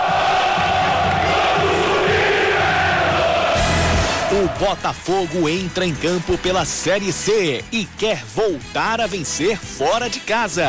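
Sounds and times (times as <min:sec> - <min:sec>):
crowd shouting and cheering: 0:00.0 - 0:07.6
speech: 0:04.4 - 0:10.6.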